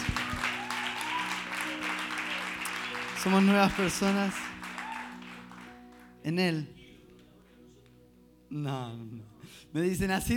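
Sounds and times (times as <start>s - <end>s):
audience applauding: 0.0s - 6.2s
speech: 3.2s - 4.4s, 6.3s - 6.8s, 8.5s - 10.3s.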